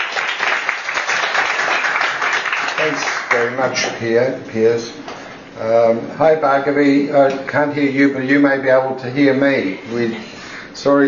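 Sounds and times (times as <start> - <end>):
audience applause welcoming a speaker at a talk: 0.0 - 3.6
speech: 2.8 - 11.0.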